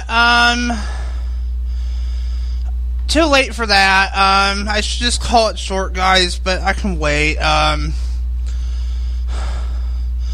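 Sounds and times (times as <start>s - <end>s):
low hum: 0.0s - 10.3s
speech: 0.1s - 1.0s, 3.1s - 8.1s
heavy gasping breathing: 0.7s - 2.8s, 7.9s - 10.3s.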